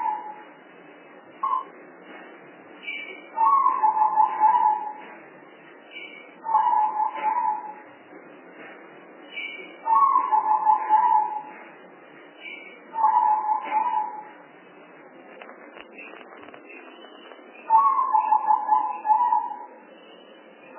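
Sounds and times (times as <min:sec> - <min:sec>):
spotted dove cooing: 0:03.4 - 0:05.0, 0:06.5 - 0:07.8, 0:09.9 - 0:11.5, 0:13.0 - 0:14.3, 0:17.7 - 0:19.7.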